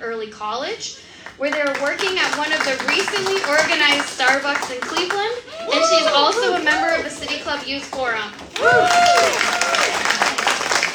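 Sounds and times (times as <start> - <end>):
speech: 0.2 - 9.5
hesitant scattered audience applause: 1.3 - 10.9.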